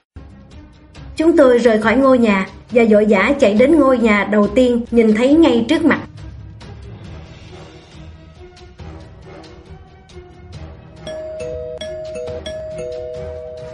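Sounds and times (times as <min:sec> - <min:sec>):
speech: 0:01.2 - 0:06.1
doorbell ringing: 0:11.1 - 0:13.7.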